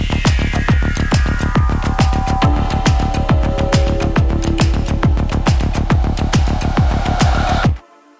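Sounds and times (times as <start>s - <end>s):
rave music: 0.0s - 7.8s.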